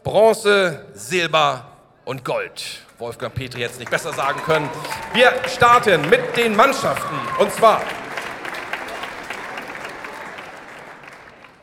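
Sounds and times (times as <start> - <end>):
speech: 0.1 - 8.0
audience applause: 3.4 - 11.6.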